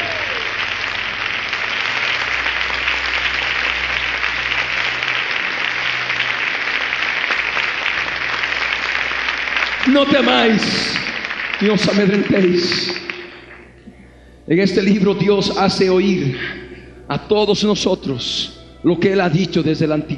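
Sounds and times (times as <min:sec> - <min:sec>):
audience applause: 0:00.0 - 0:13.7
speech: 0:10.0 - 0:13.1, 0:14.5 - 0:20.1.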